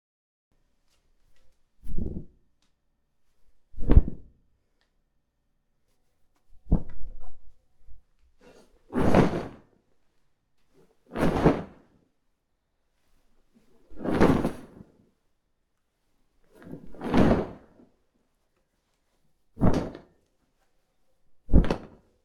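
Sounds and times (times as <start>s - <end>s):
large wings and superhero cape flapping foley: 1.8s - 2.3s, 9.0s - 9.6s, 11.2s - 11.8s, 14.0s - 14.8s, 16.8s - 17.6s, 19.6s - 20.0s, 21.5s - 22.0s.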